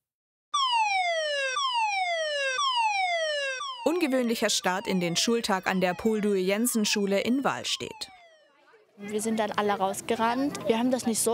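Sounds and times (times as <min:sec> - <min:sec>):
civil defense warning siren wailing: 0:00.6 - 0:08.9
speech: 0:03.8 - 0:08.2, 0:09.0 - 0:11.3.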